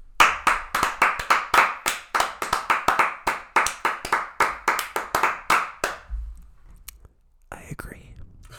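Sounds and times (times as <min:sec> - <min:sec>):
hand clapping in applause for a speaker: 0:00.0 - 0:06.1.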